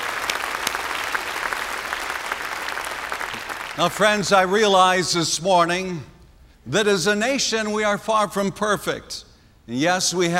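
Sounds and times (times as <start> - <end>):
audience applause: 0.0 - 4.0
speech: 3.8 - 10.3.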